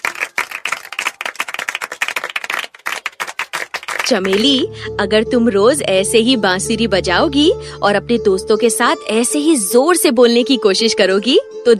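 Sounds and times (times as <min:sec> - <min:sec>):
applause: 0:00.0 - 0:04.6
speech: 0:04.1 - 0:11.7.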